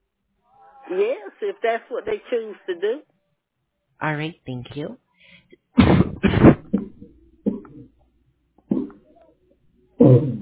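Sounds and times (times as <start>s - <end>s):
speech: 0.9s - 3.1s, 4.0s - 5.9s, 10.0s - 10.4s
harsh coughing: 5.6s - 7.9s.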